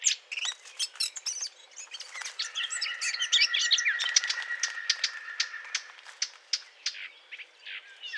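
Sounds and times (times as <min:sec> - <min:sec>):
Eurasian blackcap warbling: 0:00.3 - 0:07.0.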